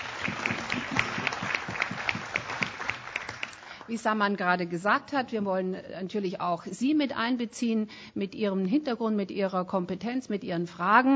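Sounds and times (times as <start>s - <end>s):
audience applause: 0.0s - 3.9s
speech: 3.9s - 11.1s.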